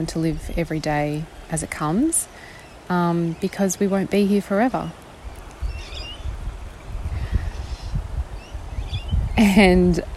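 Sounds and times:
speech: 0.0s - 5.0s, 9.4s - 10.1s
wind rustling through trees: 0.0s - 10.1s.

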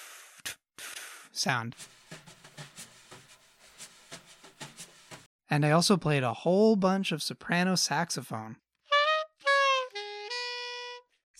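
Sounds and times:
speech: 1.4s - 2.0s, 5.5s - 8.6s
wire brushes sweeping a snare drum: 1.8s - 5.3s.

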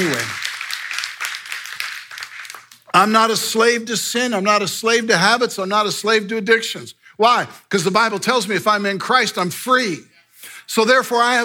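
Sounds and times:
speech: 0.0s - 0.4s, 3.0s - 10.1s, 10.7s - 11.4s
audience clapping: 0.0s - 2.9s.

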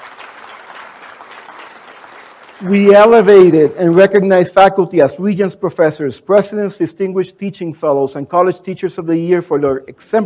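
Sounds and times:
audience round of applause: 0.0s - 4.0s
speech: 2.6s - 10.2s.

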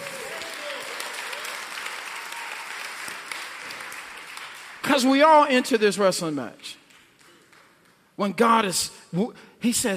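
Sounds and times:
audience clapping: 0.0s - 8.2s
speech: 4.9s - 6.8s, 8.2s - 9.9s.

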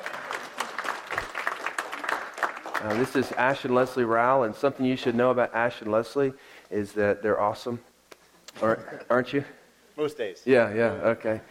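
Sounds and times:
audience applause: 0.0s - 3.8s
speech: 2.8s - 7.9s, 8.6s - 11.4s.

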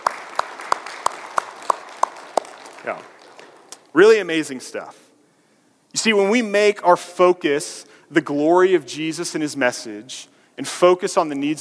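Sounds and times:
audience applause: 0.0s - 3.8s
speech: 2.8s - 3.2s, 3.9s - 5.0s, 5.9s - 11.5s.

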